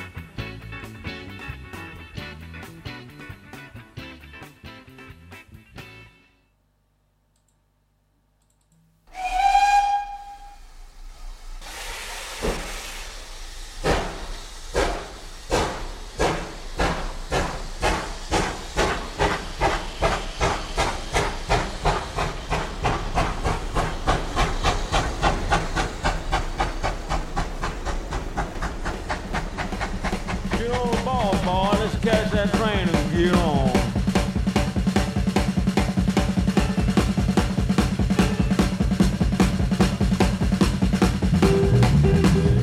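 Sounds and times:
train whistle at departure: 0:09.1 - 0:12.7
steam hiss at departure: 0:09.2 - 0:42.2.

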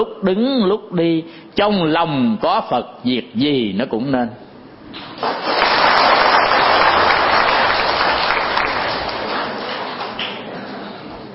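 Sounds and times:
speech: 0:00.0 - 0:05.4
audience applause: 0:05.1 - 0:10.6.

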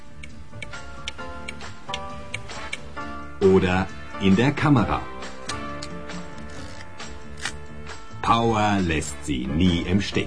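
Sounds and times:
continuous sound: 0:00.0 - 0:10.2
clock ticking in a battery advertisement: 0:00.1 - 0:02.9
speech: 0:03.4 - 0:05.1, 0:08.3 - 0:10.2.

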